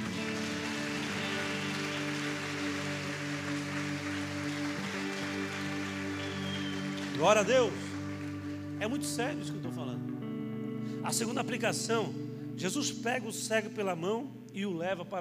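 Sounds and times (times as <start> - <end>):
audience applause: 0.0 - 8.8
speech: 7.2 - 7.8, 8.8 - 10.0, 11.0 - 15.1.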